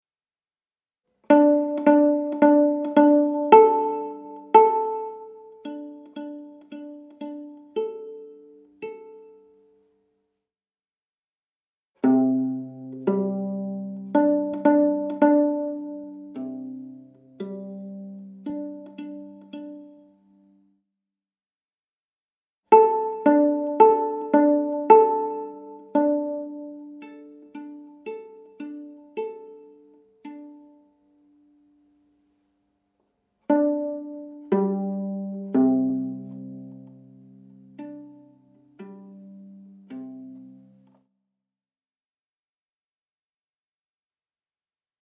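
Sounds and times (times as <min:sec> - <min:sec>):
viola improvisation with echoes: 0:01.3 - 0:09.7, 0:12.0 - 0:20.6, 0:22.7 - 0:32.1, 0:33.4 - 0:40.9.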